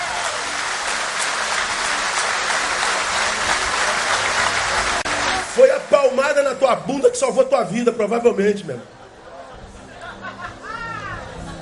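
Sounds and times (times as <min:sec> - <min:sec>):
audience applause: 0:00.0 - 0:07.2
speech: 0:06.0 - 0:09.0
laughter: 0:08.9 - 0:11.6.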